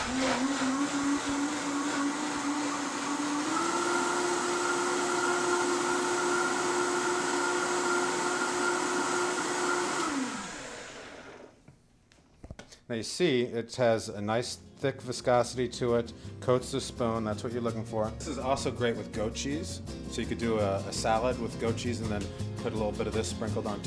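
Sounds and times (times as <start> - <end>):
blender running: 0.0 - 11.6
speech: 12.9 - 23.8.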